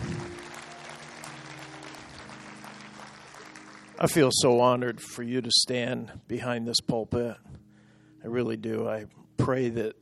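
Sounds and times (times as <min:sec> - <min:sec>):
audience applause: 0:00.0 - 0:04.3
speech: 0:04.0 - 0:07.5, 0:08.2 - 0:10.0.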